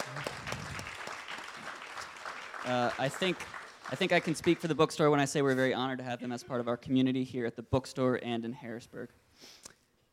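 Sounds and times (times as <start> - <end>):
audience applause: 0.0 - 4.9
speech: 2.6 - 10.1.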